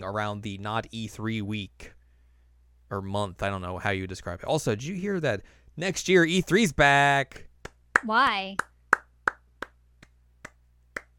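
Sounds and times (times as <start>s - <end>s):
speech: 0.0s - 2.0s, 2.9s - 8.7s
person clapping: 7.6s - 11.1s.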